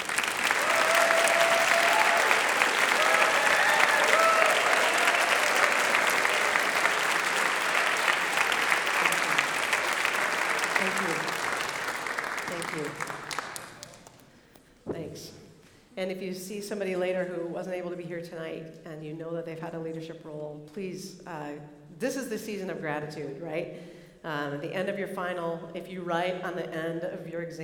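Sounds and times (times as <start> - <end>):
audience applause: 0.0 - 14.3
speech: 16.0 - 27.6.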